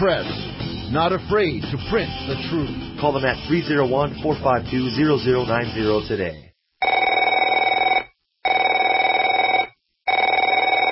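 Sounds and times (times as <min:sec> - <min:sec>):
speech: 0:00.0 - 0:06.5
telephone bell ringing: 0:06.8 - 0:10.8.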